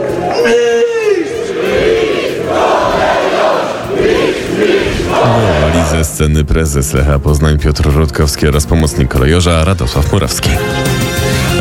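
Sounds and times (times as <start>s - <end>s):
football fans cheering and chanting in celebration: 0.0s - 6.4s
speech: 6.2s - 11.0s.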